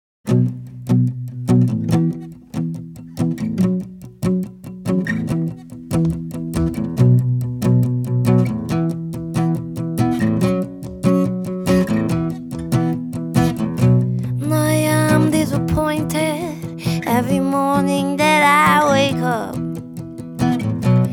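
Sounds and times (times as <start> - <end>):
acoustic music: 0.3 - 21.1.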